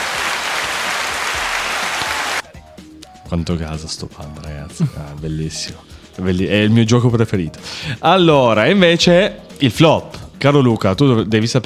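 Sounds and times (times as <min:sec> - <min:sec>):
crowd applause: 0:00.0 - 0:02.4
speech: 0:03.3 - 0:11.6.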